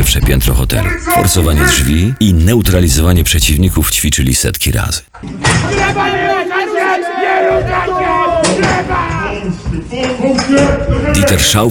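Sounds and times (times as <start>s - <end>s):
speech: 0.1s - 7.9s, 9.5s - 11.6s
muffled crowd protest chanting: 5.4s - 9.8s.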